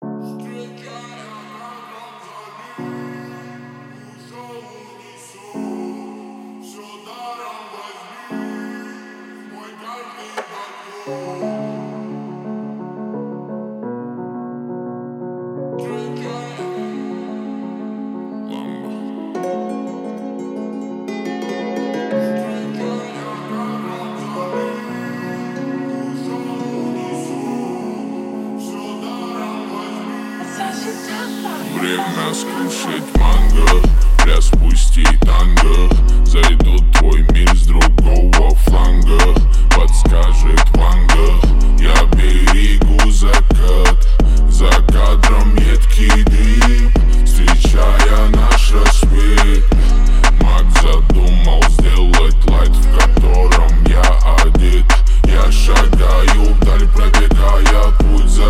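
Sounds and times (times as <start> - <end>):
37 39 41 Hz low bass tones remix: 33.2 - 58.4.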